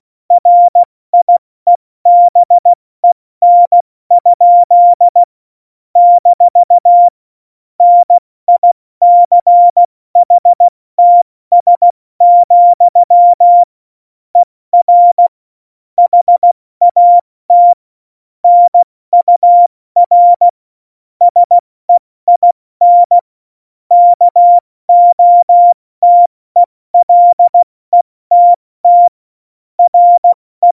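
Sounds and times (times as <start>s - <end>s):
CW Morse code beeps: 0.3s - 1.4s, 2.1s - 5.3s, 6.0s - 7.1s, 7.8s - 13.7s, 14.4s - 15.3s, 16.0s - 17.8s, 18.4s - 20.5s, 21.2s - 21.6s, 22.3s - 23.2s, 23.9s - 29.2s, 29.8s - 30.7s.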